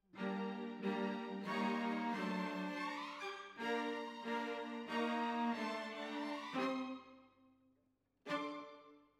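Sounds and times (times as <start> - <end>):
cellos playing: 0.2 - 7.0.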